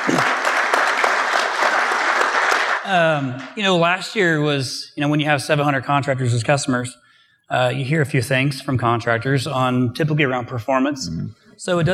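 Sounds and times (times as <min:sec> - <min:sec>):
audience applause: 0:00.0 - 0:02.9
speech: 0:02.9 - 0:11.9.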